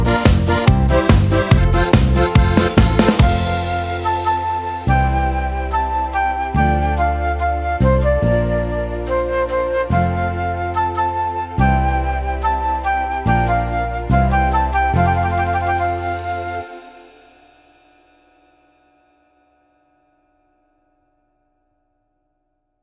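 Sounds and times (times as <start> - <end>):
folk music: 0.0 - 17.0.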